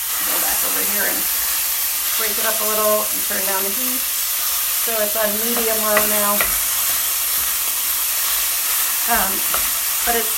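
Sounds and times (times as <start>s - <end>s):
meat sizzling as it browns in a hot pan on the stove: 0.0s - 10.3s
speech: 2.2s - 4.2s, 4.8s - 6.6s, 9.1s - 10.3s.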